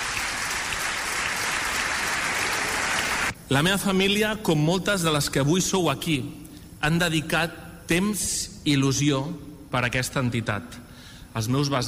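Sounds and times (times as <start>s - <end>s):
audience applause: 0.0s - 3.3s
speech: 3.5s - 11.8s.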